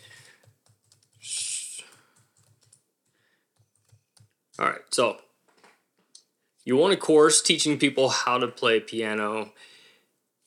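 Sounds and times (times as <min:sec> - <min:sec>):
typing a course topic on a computer keyboard: 0:00.0 - 0:04.4
speech: 0:04.6 - 0:05.2, 0:06.6 - 0:09.7.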